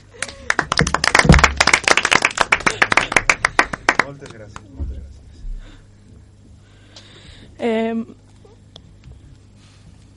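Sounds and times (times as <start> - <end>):
applause: 0.0 - 4.8
speech: 4.1 - 5.0, 7.6 - 8.2.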